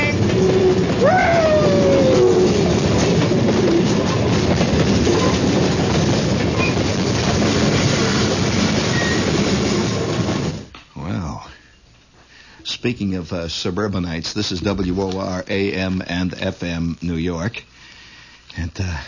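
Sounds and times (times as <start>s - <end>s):
train running on rails: 0.0s - 10.7s
speech: 12.8s - 17.8s, 18.6s - 19.0s.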